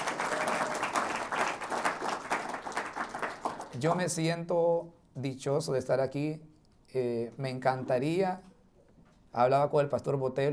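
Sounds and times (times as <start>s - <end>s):
audience applause: 0.0s - 3.8s
speech: 3.8s - 8.5s, 9.3s - 10.5s.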